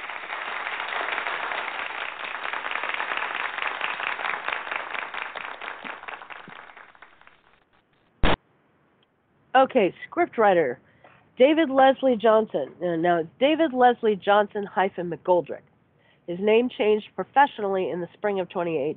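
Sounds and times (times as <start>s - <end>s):
applause: 0.0s - 7.7s
speech: 9.6s - 15.7s, 16.3s - 18.9s.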